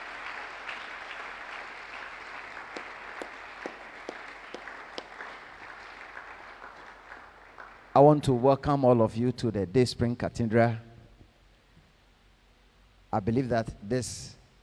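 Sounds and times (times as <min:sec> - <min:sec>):
church congregation applauding at a conference at Day Spring Cathedral: 0:00.0 - 0:08.4
speech: 0:08.0 - 0:10.9, 0:13.2 - 0:14.4.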